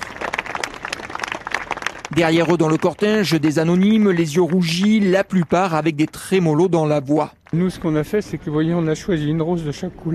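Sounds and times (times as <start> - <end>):
crowd applauding: 0.0 - 8.1
speech: 2.2 - 10.1.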